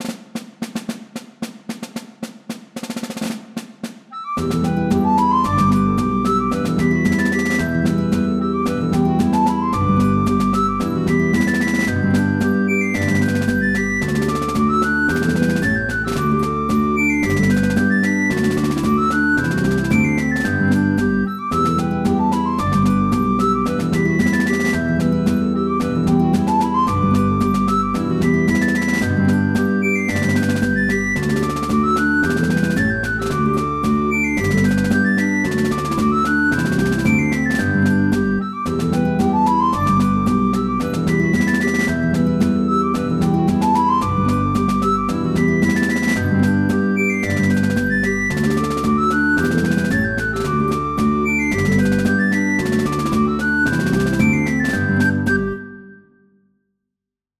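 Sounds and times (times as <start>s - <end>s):
hornpipe tune: 4.3s - 56.0s.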